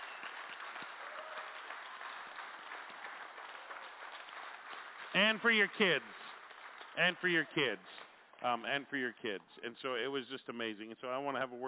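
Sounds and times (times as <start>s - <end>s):
audience applause: 0.0s - 7.9s
speech: 5.2s - 6.2s, 7.0s - 11.6s.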